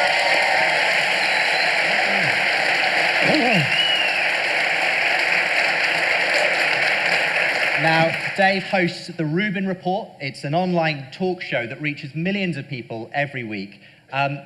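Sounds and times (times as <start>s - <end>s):
whoop or cheer: 0.0s - 4.4s
audience applause: 0.0s - 8.9s
speech: 7.9s - 14.4s.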